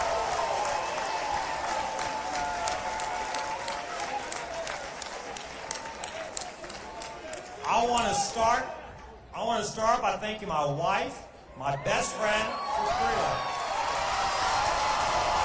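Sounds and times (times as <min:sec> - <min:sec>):
audience applause: 0:00.0 - 0:07.9, 0:12.8 - 0:15.4
speech: 0:07.8 - 0:08.8, 0:09.4 - 0:13.5.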